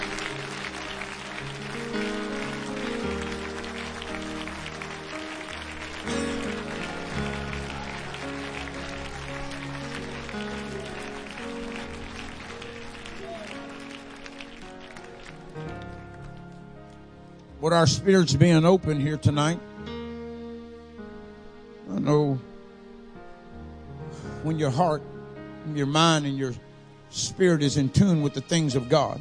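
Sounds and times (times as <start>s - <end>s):
audience hand clapping: 0.0s - 17.1s
speech: 17.7s - 19.7s, 24.6s - 25.1s, 25.7s - 29.1s.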